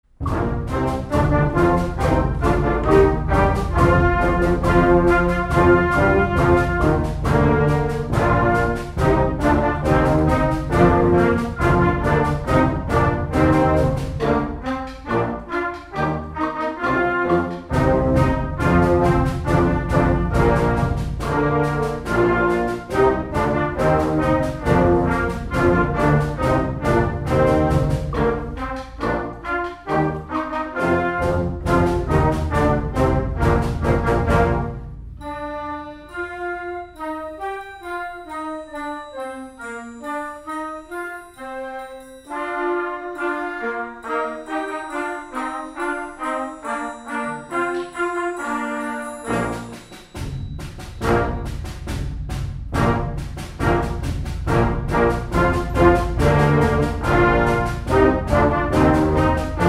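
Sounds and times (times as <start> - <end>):
march music: 0.0 - 59.6.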